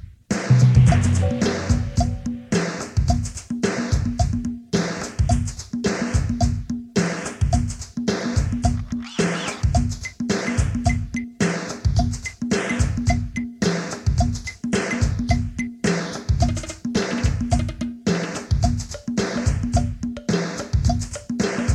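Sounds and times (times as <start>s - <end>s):
rhythmic patterns: 0.3s - 21.6s.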